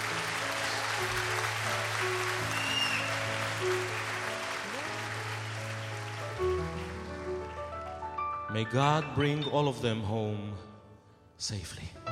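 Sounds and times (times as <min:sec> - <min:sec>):
audience clapping: 0:00.0 - 0:08.3
sustained tones of singing or music: 0:08.5 - 0:12.0
speech: 0:08.6 - 0:10.7, 0:11.4 - 0:12.0.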